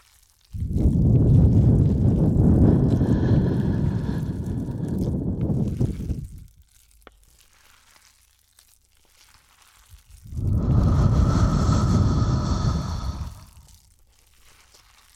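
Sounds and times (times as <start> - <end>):
breath blown into the microphone: 0.6 - 6.5, 10.2 - 13.9.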